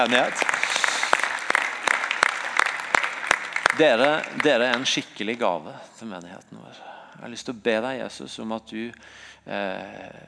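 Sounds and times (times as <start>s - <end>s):
speech: 0.0s - 0.6s, 3.8s - 10.2s
audience applause: 0.0s - 5.0s.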